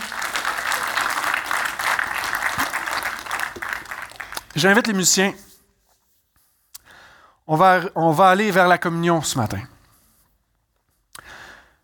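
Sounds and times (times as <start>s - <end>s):
audience applause: 0.0s - 4.8s
speech: 4.6s - 5.5s, 7.5s - 9.8s.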